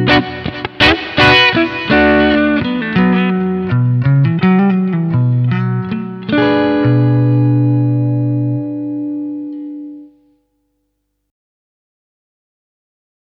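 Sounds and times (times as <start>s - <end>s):
clean guitar picking on front humbucker: 0.0s - 10.2s.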